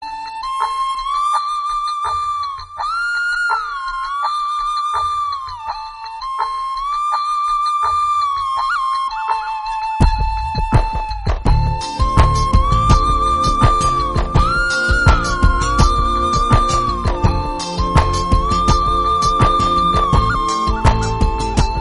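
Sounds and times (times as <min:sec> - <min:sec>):
flute: 0:00.0 - 0:21.7.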